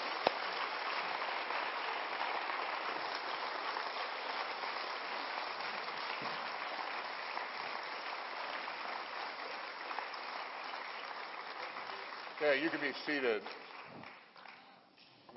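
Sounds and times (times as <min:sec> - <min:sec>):
audience applause: 0:00.0 - 0:14.8
speech: 0:12.4 - 0:13.6.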